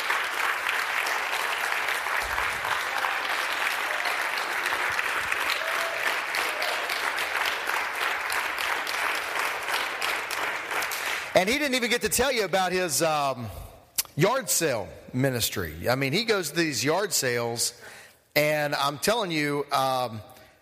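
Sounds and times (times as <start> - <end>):
audience applause: 0.0 - 11.7
speech: 11.4 - 20.3.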